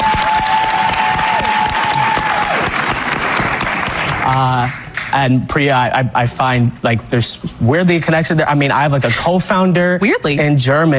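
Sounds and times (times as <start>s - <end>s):
audience clapping: 0.0s - 5.2s
speech: 4.3s - 10.9s.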